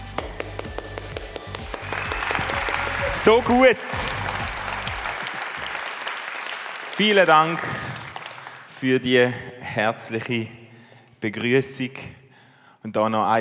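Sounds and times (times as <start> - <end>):
standing audience applause: 1.0 - 8.7
speech: 3.2 - 4.1, 7.0 - 7.9, 8.8 - 10.6, 11.2 - 12.2, 12.8 - 13.3.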